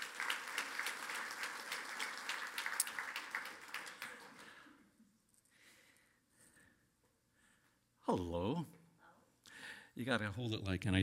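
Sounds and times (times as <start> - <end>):
audience applause: 0.0 - 4.8
speech: 8.1 - 8.8, 10.0 - 11.0.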